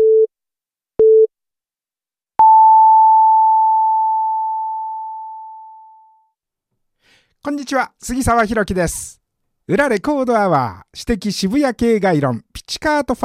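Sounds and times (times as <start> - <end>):
radio noon time signal beeps: 2.4 - 5.9
speech: 7.4 - 13.2.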